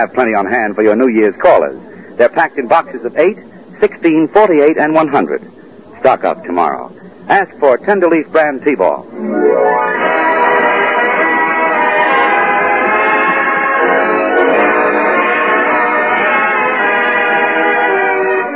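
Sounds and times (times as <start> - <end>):
speech: 0.0 - 10.2
orchestra playing: 9.1 - 18.5.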